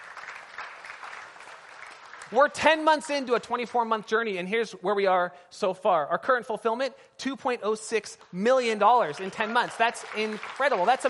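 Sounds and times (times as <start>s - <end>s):
crowd clapping: 0.0s - 3.9s, 8.6s - 11.0s
speech: 2.3s - 11.0s.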